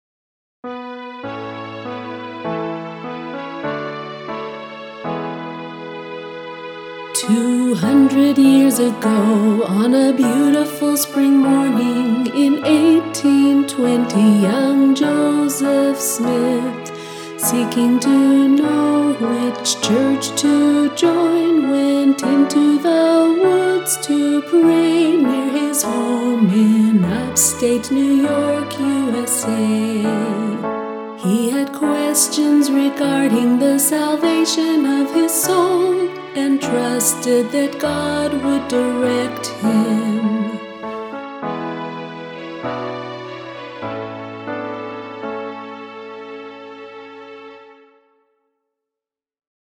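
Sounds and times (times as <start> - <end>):
vocals: 7.1 - 41.3.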